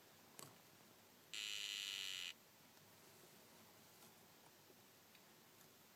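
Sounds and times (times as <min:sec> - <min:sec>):
dyeing poison frog call: 0:01.3 - 0:02.4.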